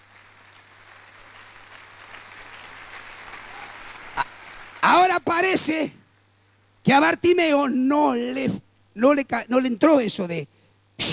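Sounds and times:
audience applauding: 0.0s - 5.7s
speech: 5.2s - 6.0s, 6.9s - 11.1s.

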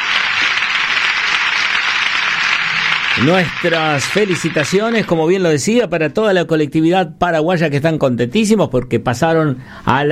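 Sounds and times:
crowd applause: 0.0s - 5.2s
speech: 3.2s - 10.1s.

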